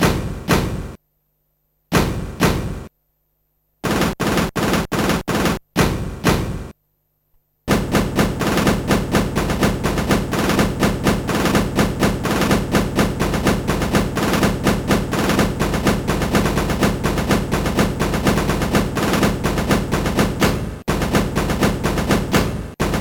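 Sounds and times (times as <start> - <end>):
drums: 0.0 - 1.0, 1.9 - 2.9, 3.8 - 6.7, 7.7 - 23.0.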